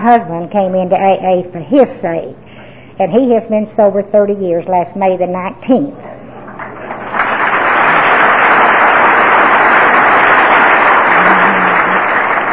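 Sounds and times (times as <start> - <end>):
speech: 0.0 - 2.4, 3.0 - 6.1
audience clapping: 6.5 - 12.5.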